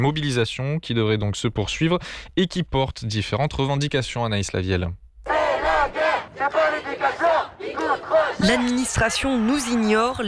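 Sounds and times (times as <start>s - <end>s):
speech: 0.0s - 5.0s, 6.4s - 10.2s
young student protesters chanting in unison at a demonstration: 5.3s - 9.5s.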